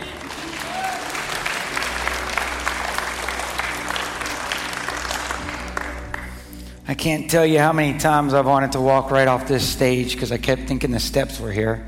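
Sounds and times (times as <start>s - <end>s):
audience clapping: 0.0s - 6.7s
speech: 6.9s - 11.8s.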